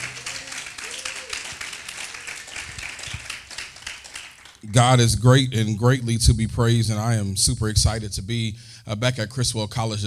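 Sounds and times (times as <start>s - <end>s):
voices calling and cheering: 0.0s - 2.8s
crowd clapping: 0.0s - 5.1s
speech: 4.6s - 10.0s.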